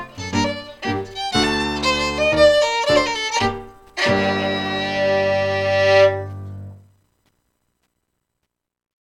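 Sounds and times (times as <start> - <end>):
Scottish fiddling of a strathspey: 0.0 - 6.8.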